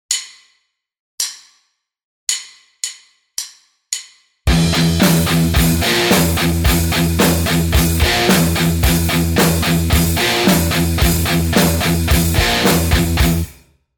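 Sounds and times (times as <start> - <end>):
guitar riff: 4.5 - 13.6.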